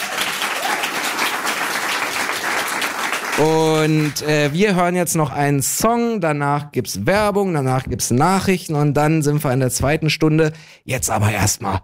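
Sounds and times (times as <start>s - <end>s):
crowd applauding: 0.0s - 4.8s
speech: 3.4s - 11.8s.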